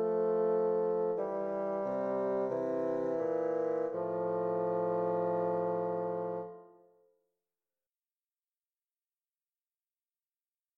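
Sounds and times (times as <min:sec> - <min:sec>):
beginning bassoon duet in F major: 0:00.0 - 0:06.8.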